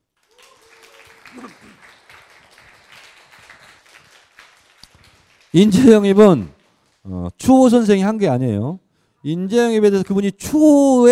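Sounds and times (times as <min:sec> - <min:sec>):
audience applause: 0:00.1 - 0:07.2
speech: 0:01.3 - 0:02.0, 0:05.5 - 0:11.0.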